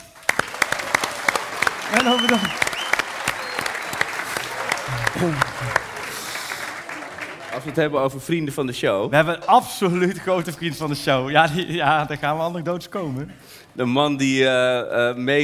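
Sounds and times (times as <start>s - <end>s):
audience applause: 0.0s - 8.2s
speech: 1.9s - 2.7s, 5.2s - 5.9s, 7.6s - 15.4s.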